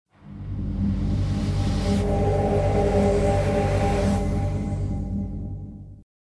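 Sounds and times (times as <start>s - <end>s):
transition sound: 0.1s - 6.0s.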